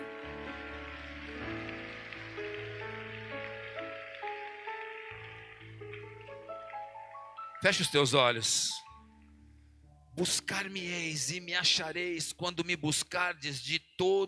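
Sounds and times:
crowd applauding: 0.0s - 8.2s
sustained keyboard chords: 0.0s - 11.1s
speech: 7.6s - 8.8s, 10.2s - 14.2s.

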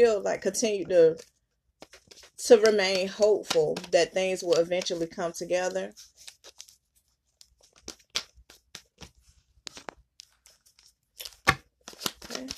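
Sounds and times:
speech: 0.0s - 6.6s
tarot cards shuffled and handled: 1.0s - 12.5s.

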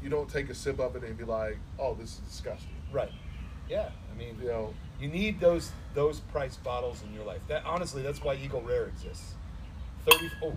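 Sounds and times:
speech: 0.1s - 9.4s, 10.0s - 10.5s
drinking glass clinking: 10.1s - 10.5s.

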